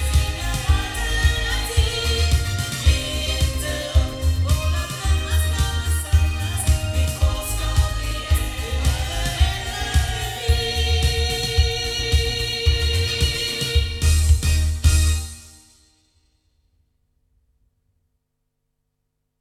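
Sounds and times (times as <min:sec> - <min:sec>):
loudspeakers recorded with an Oktava MKL-5000 omni microphone: 0:00.0 - 0:15.4.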